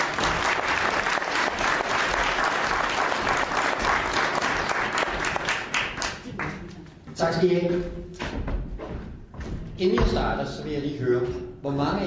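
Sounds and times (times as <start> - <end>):
audience applause welcoming a speaker on stage: 0.0 - 6.6
speech: 7.3 - 8.0, 9.8 - 12.0.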